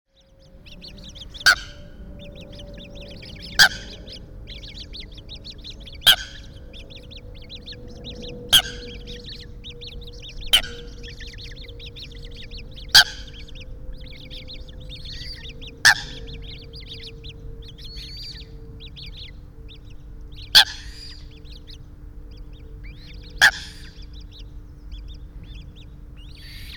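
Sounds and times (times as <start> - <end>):
faint hum: 0.1 - 26.7
high peeping: 0.2 - 26.7
Eurasian coot calling: 0.6 - 19.3.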